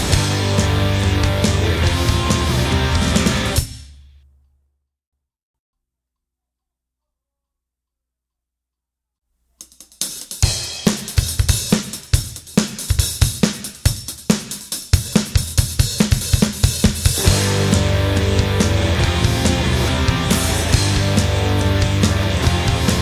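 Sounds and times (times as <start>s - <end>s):
punk instrumental: 0.0s - 4.2s, 9.6s - 23.0s.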